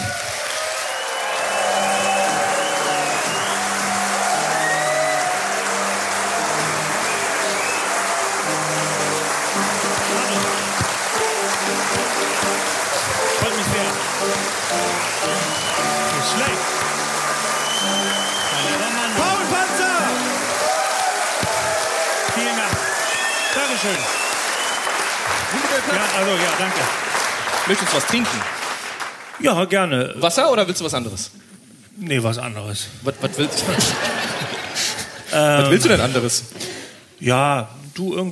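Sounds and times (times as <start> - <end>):
studio audience applause and cheering: 0.0 - 29.6, 33.3 - 36.2
band music: 1.2 - 24.3
speech: 28.0 - 28.5, 29.4 - 34.3, 35.3 - 36.6, 37.2 - 38.3
laughter: 33.1 - 36.5.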